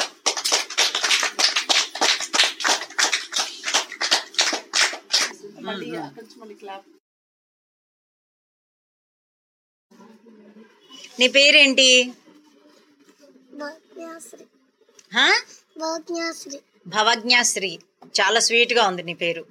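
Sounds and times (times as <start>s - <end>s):
children clapping in unison: 0.0s - 5.4s
speech: 5.7s - 7.0s, 11.2s - 12.2s, 13.6s - 19.4s.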